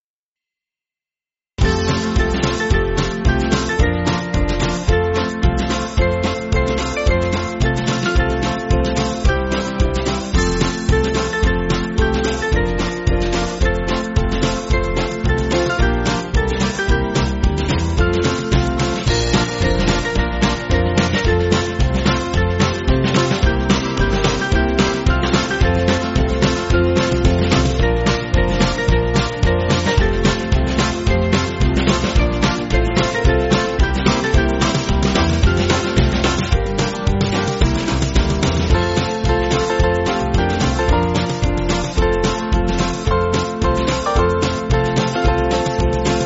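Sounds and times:
band backing music: 1.6s - 46.2s.

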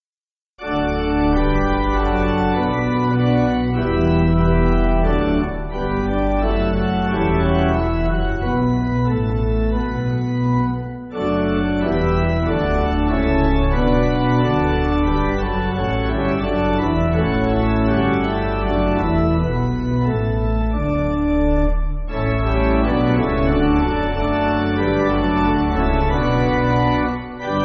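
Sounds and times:
pipe organ music backing: 0.6s - 27.6s.

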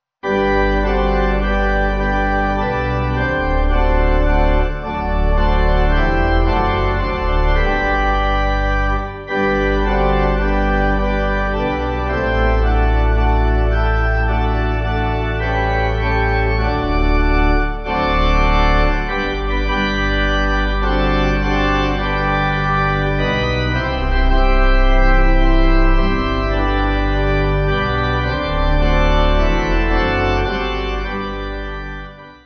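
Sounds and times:
pipe organ: 0.2s - 32.4s.

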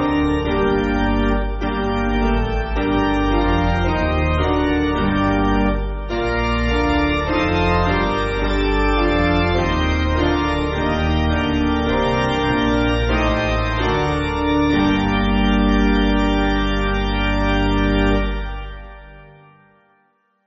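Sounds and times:
piano piece: 0.0s - 19.6s.

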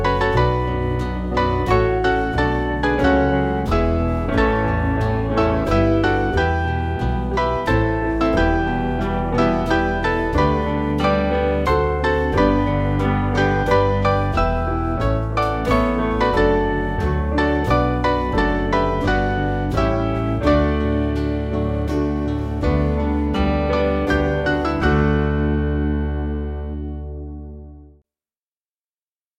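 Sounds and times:
piano piece: 0.0s - 28.0s.

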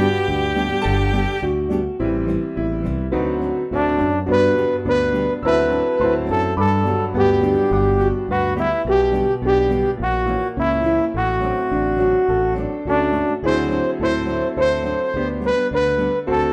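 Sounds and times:
MIDI gospel song: 0.0s - 16.5s.

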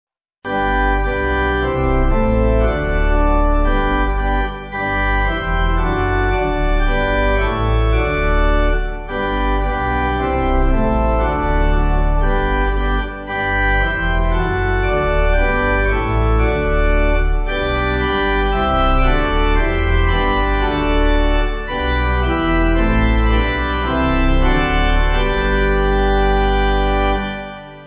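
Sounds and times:
pipe organ: 0.5s - 27.8s.

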